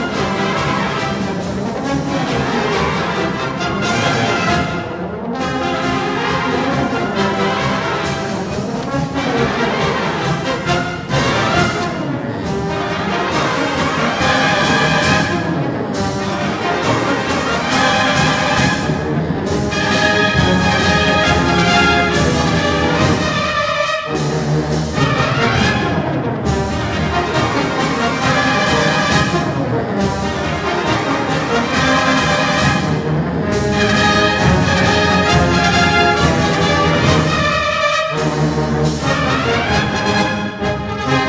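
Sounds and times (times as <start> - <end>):
march music: 0.0 - 41.2.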